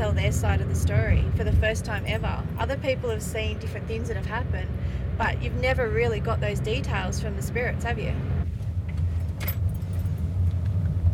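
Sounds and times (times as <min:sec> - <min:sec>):
car pulling off a parkway into a small car park: 0:00.0 - 0:11.1
speech: 0:00.3 - 0:08.4
keys jangling: 0:09.2 - 0:10.3.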